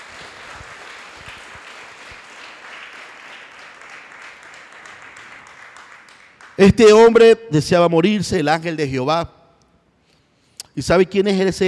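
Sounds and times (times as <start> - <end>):
church congregation clapping: 0.0 - 7.2
speech: 6.6 - 9.4, 10.8 - 11.6.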